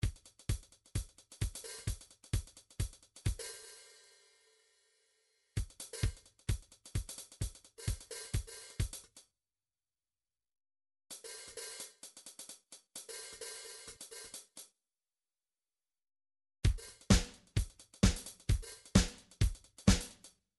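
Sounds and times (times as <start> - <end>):
midi drums: 0.0 - 3.5, 5.6 - 9.1, 16.6 - 20.3.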